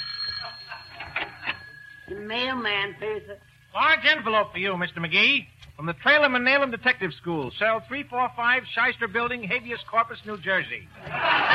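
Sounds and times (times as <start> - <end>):
doorbell chimes: 0.0 - 3.1
low hum: 0.0 - 11.5
laughter: 0.4 - 1.6, 11.0 - 11.5
speech: 2.1 - 11.5.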